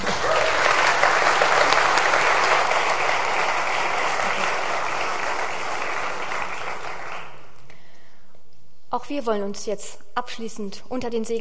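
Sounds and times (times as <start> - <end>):
audience applause: 0.0 - 7.6
speech: 9.0 - 11.3.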